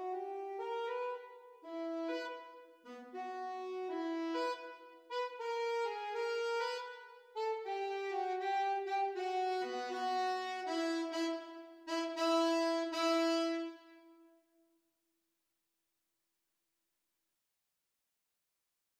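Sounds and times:
saxophone duet playalong: 0.0 - 14.2.

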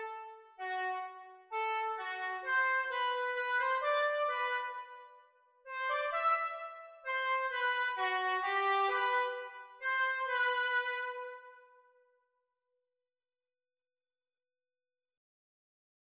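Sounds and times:
oboe duet practice: 0.0 - 5.1, 5.7 - 11.6.

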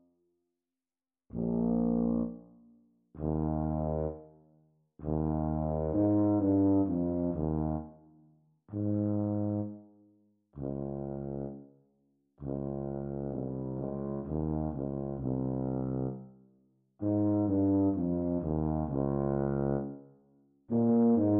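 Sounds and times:
E-flat tuba duet practice: 1.3 - 2.4, 3.2 - 4.3, 5.0 - 8.0, 8.7 - 9.8, 10.6 - 11.6, 12.4 - 16.3, 17.0 - 20.0, 20.7 - 21.3.

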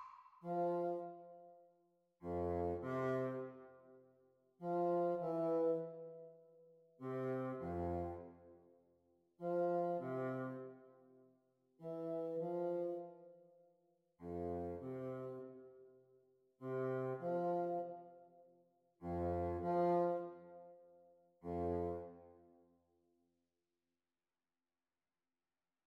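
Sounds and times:
bassoon duet: 0.5 - 1.5, 2.2 - 3.7, 4.6 - 6.3, 7.0 - 8.4, 9.4 - 10.7, 11.8 - 13.2, 14.2 - 15.6, 16.6 - 18.1, 19.0 - 20.7, 21.4 - 22.4.

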